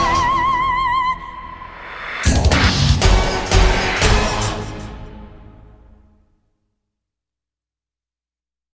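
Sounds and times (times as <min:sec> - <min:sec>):
techno opera music: 0:00.0 - 0:05.7.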